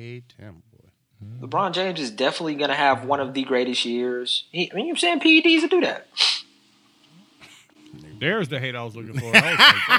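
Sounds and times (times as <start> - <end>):
speech: 0.0 - 6.4, 8.2 - 9.9
sniffle: 6.2 - 6.5
laughter: 9.1 - 9.9.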